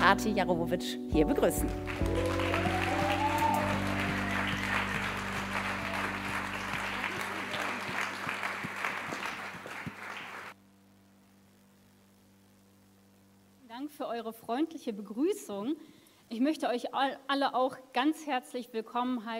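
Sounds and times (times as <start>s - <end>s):
speech: 0.1s - 2.8s, 14.2s - 19.3s
audience applause: 1.6s - 10.6s.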